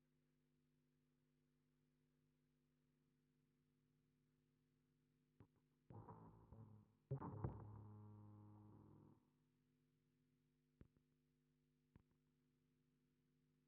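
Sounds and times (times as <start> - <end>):
bass guitar through SansAmp: 5.9 - 9.2.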